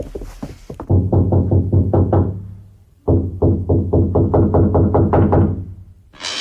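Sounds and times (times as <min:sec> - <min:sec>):
knocking on a door: 0:00.8 - 0:02.5, 0:03.1 - 0:05.7.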